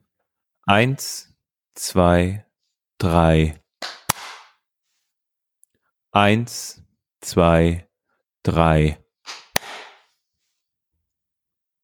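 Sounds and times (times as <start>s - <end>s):
speech: 0.7s - 3.6s, 6.1s - 9.4s
hand claps for sync: 3.8s - 4.6s, 9.3s - 10.1s.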